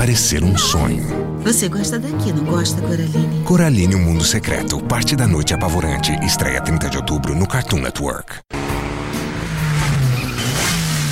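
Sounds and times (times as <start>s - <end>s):
speech: 0.0s - 8.6s
Mitsubishi Lancer engine revving: 8.5s - 11.1s.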